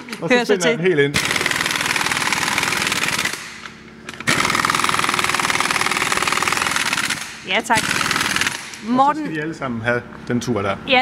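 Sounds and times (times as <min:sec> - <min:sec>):
speech: 0:00.2 - 0:01.5, 0:07.5 - 0:08.2, 0:08.8 - 0:11.0
impact wrench running in wheel bolts at a car workshop: 0:01.1 - 0:08.9.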